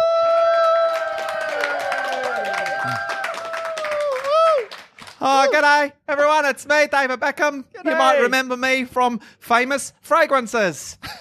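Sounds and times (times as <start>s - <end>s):
comedy audience whooping and cheering: 0.0s - 4.9s
comedy audience clapping to welcome a performer: 0.0s - 5.6s
speech: 2.8s - 3.1s, 5.2s - 11.1s.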